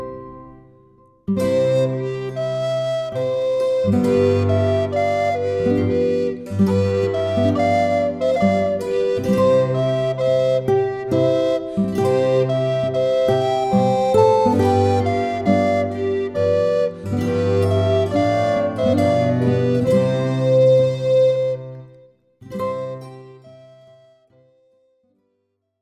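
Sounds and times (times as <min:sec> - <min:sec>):
flute tones: 0:01.3 - 0:24.7
yodeling: 0:02.4 - 0:21.7.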